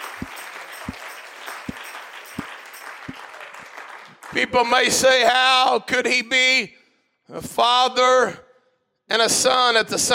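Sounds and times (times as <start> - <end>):
audience clapping hands in a slow rhythm: 0.0 - 5.2
speech: 4.4 - 8.4, 9.1 - 10.1.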